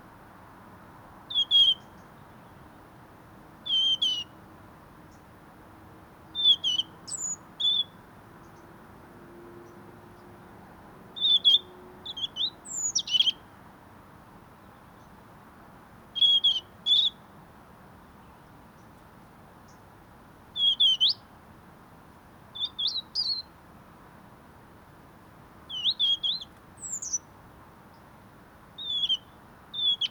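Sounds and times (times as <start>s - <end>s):
low hiss: 0.0s - 30.0s
European robin calling: 1.3s - 2.1s, 3.6s - 4.4s, 6.4s - 8.6s, 11.2s - 13.5s, 16.2s - 17.3s, 20.6s - 21.3s, 22.6s - 23.5s, 25.7s - 27.3s, 28.8s - 30.0s.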